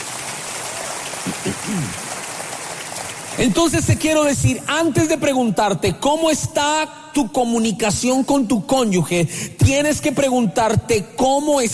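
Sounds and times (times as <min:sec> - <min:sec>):
audience applause: 0:00.0 - 0:03.5
speech: 0:01.7 - 0:02.1, 0:03.4 - 0:11.7.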